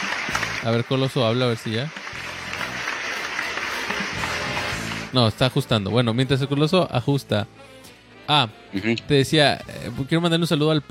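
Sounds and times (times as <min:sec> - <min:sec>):
applause greeting a guest arriving for a talk show: 0:00.0 - 0:05.6
speech: 0:00.6 - 0:02.3, 0:05.1 - 0:07.7, 0:08.3 - 0:10.9.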